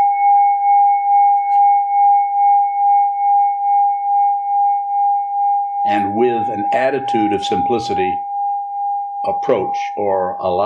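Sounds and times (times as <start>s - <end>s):
meditation bell struck and ringing: 0.0s - 10.6s
speech: 6.7s - 8.3s, 9.2s - 10.6s.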